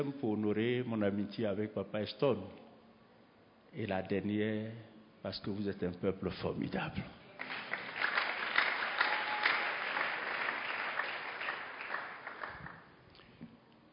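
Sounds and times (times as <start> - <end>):
speech: 0.0 - 2.7, 3.7 - 7.6
audience applause: 7.4 - 12.9.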